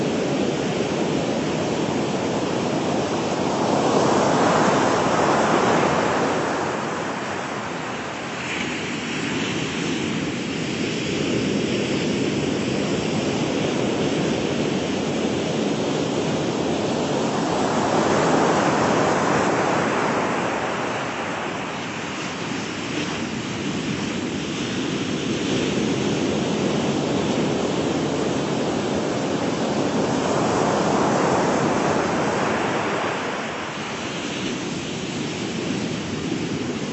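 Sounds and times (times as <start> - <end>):
beach waves and surf: 0.0 - 36.9.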